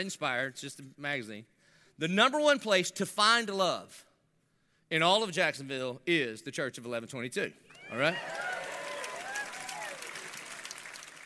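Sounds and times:
speech: 0.0s - 4.1s, 4.9s - 8.5s
audience clapping: 7.7s - 11.2s.

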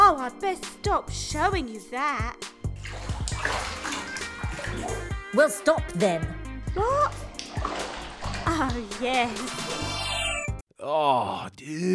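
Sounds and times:
speech: 0.3s - 3.9s, 4.7s - 7.8s, 8.5s - 9.9s, 10.8s - 11.9s
bathwater sloshing in a tub: 2.6s - 5.2s, 6.6s - 9.5s.

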